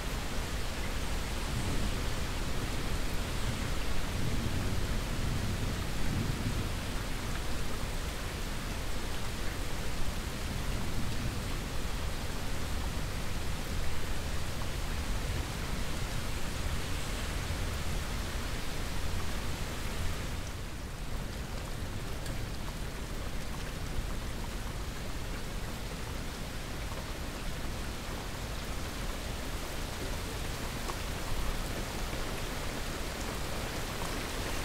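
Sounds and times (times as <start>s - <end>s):
heavy rain on a windowsill: 0.0s - 34.6s.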